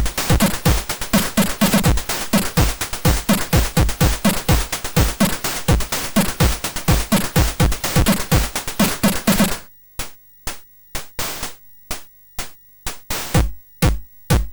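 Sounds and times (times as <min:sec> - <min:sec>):
rhythmic MOS6581R3 synth chip sound: 0:00.0 - 0:09.6.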